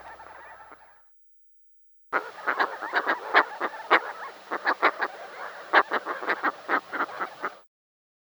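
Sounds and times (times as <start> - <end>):
Caspian tern giving harsh rasping calls: 2.2 - 7.6.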